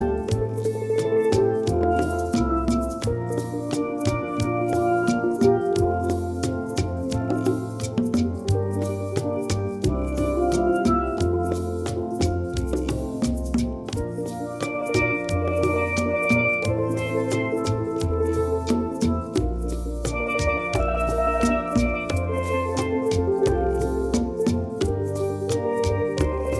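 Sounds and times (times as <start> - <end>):
Caribbean steel drums playing: 0.0 - 26.5.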